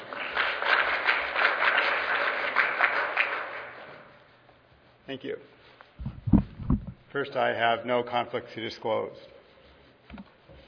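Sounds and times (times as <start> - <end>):
audience applause welcoming a speaker to a talk: 0.0 - 3.9
speech: 5.1 - 5.6, 7.1 - 9.4.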